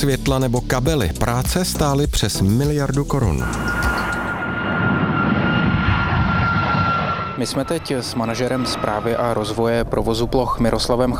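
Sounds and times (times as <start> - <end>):
speech: 0.0 - 3.8, 7.4 - 11.1
airplane flying overhead: 3.2 - 11.1.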